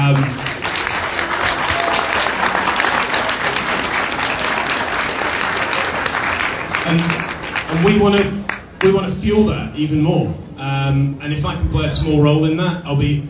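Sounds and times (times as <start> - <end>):
large audience applause: 0.0 - 8.8
speech: 8.0 - 13.2.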